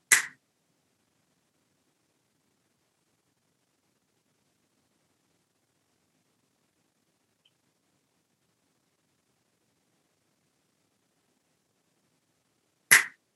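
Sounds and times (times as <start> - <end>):
finger snap: 0.1 - 0.4, 12.9 - 13.2.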